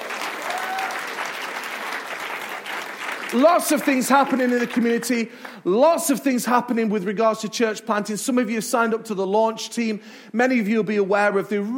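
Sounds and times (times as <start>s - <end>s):
crowd applause: 0.0s - 5.5s
speech: 3.3s - 11.7s.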